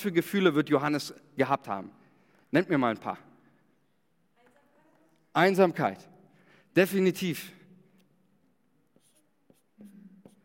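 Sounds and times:
speech: 0.0s - 3.3s, 5.4s - 6.1s, 6.8s - 7.6s
teacher handwriting a word during a Bible lesson: 8.8s - 10.4s.

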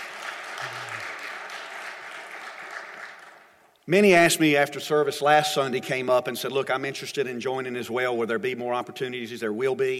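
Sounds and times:
audience clapping: 0.0s - 3.7s
speech: 3.9s - 9.9s.

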